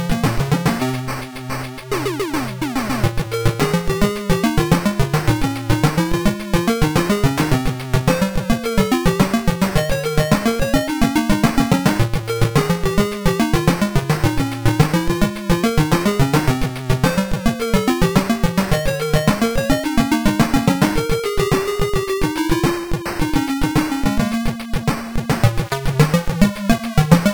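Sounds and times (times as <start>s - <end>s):
boss theme music: 0.2s - 27.3s.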